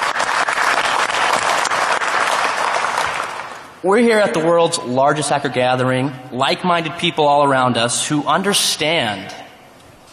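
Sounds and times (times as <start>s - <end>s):
audience applause: 0.0s - 3.7s
speech: 3.8s - 9.4s.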